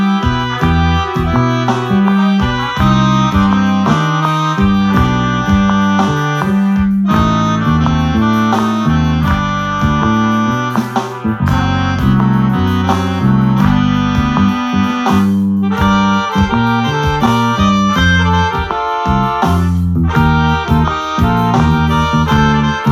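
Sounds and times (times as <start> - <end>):
Greek style music: 0.0 - 22.9.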